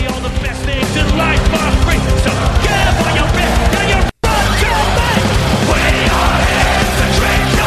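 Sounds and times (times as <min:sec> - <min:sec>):
live band playing a rowdy pirate-style drinking song: 0:00.0 - 0:07.6
gang-style shouted singing: 0:01.4 - 0:07.6.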